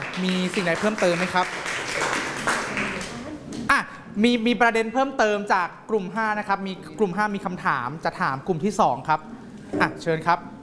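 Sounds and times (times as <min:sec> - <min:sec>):
classroom applause for a presenting student group: 0:00.0 - 0:03.2
speech: 0:00.2 - 0:02.1, 0:04.2 - 0:10.5.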